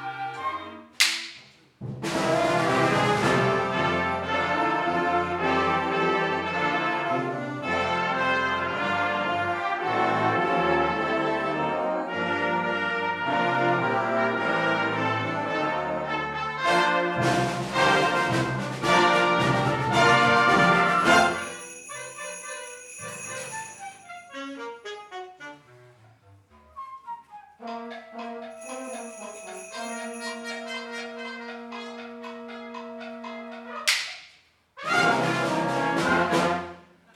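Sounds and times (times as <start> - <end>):
band playing: 1.9 - 24.9, 27.7 - 33.8, 34.8 - 36.8
bells ringing: 20.8 - 24.4, 28.6 - 31.4.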